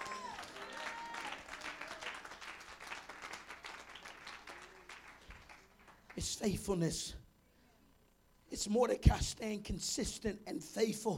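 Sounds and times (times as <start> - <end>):
audience clapping: 0.0 - 6.3
speech: 6.2 - 7.2, 8.5 - 11.1.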